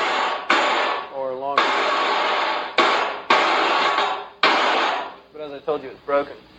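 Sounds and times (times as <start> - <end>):
electronic fake handclap triggered by snare drum: 0.0 - 5.2
speech: 5.7 - 6.5.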